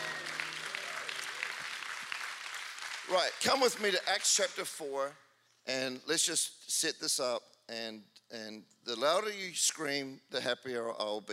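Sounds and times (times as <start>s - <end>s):
audience applause: 0.0s - 4.1s
speech: 3.1s - 11.3s.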